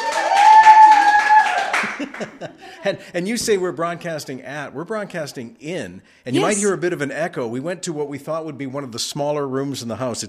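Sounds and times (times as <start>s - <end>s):
studio audience applause: 0.0s - 3.0s
laughter: 1.7s - 4.4s, 6.4s - 6.8s
speech: 2.2s - 10.2s.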